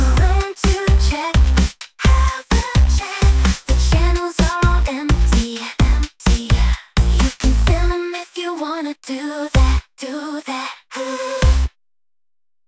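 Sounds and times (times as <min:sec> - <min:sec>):
disco music: 0:00.0 - 0:08.0, 0:09.6 - 0:09.8, 0:11.2 - 0:11.7.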